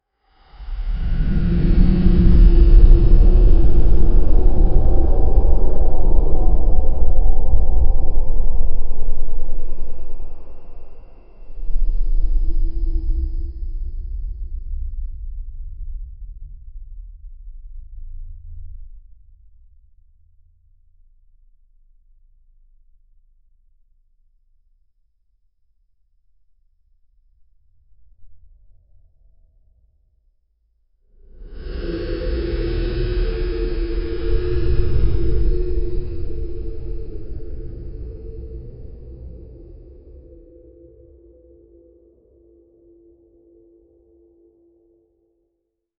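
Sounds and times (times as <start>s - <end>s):
eerie kaiju sound: 0.6s - 14.7s, 31.3s - 44.1s.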